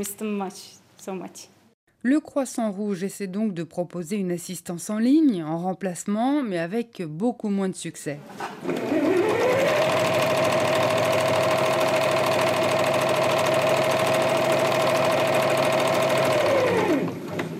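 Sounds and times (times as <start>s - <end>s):
speech: 0.0s - 9.2s
sewing machines running in a Red Crescent centre's sewing room: 8.4s - 17.5s.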